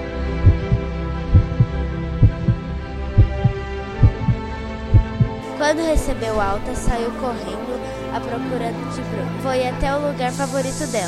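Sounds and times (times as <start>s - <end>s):
heart beating: 0.4s - 5.4s
speech: 5.7s - 11.0s.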